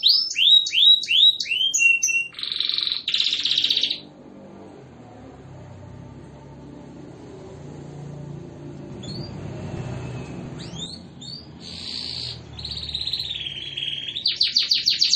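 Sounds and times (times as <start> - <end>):
canary in full song with buzzy rolls, descending sweeps and trills: 0.0 - 4.2, 8.2 - 15.1.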